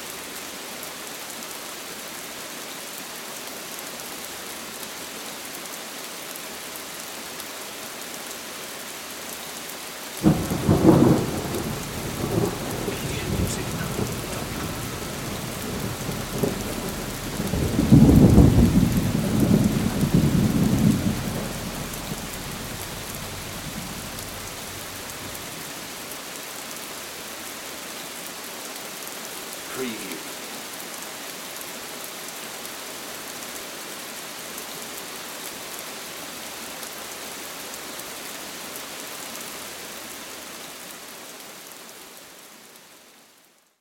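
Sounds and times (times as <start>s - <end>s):
thunderstorm: 10.2s - 25.6s.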